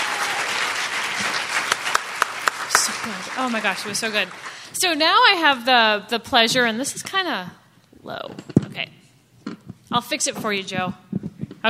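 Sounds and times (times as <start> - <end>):
audience applause: 0.0 - 4.9
speech: 3.4 - 9.0, 9.9 - 11.0.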